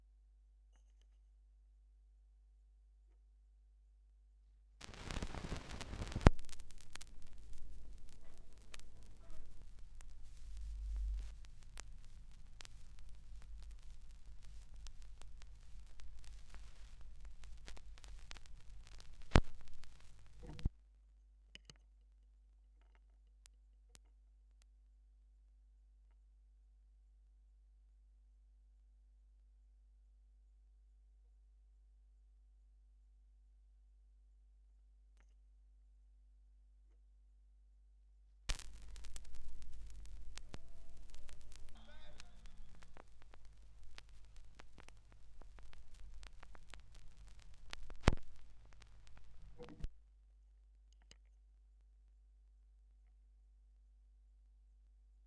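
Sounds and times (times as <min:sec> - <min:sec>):
vinyl record noise: 0:04.8 - 0:20.7, 0:38.5 - 0:50.0.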